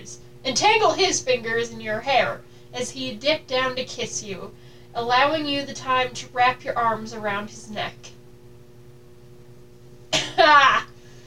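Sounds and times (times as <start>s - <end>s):
speech: 0.0s - 8.2s, 10.4s - 10.9s
person clearing throat: 10.1s - 10.9s
person coughing: 10.1s - 10.9s.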